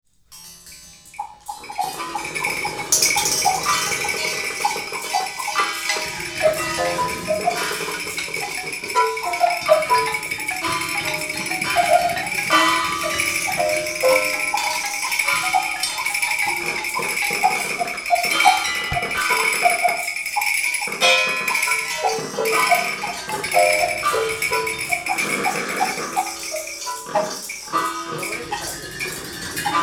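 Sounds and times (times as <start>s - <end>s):
jam session: 0.1s - 28.4s.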